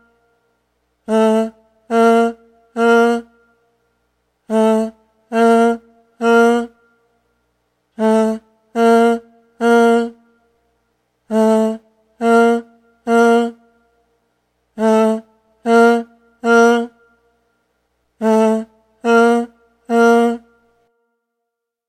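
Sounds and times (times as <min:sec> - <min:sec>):
voice: 0:01.1 - 0:03.2, 0:04.5 - 0:06.7, 0:08.0 - 0:10.2, 0:11.3 - 0:13.6, 0:14.8 - 0:16.9, 0:18.2 - 0:20.4.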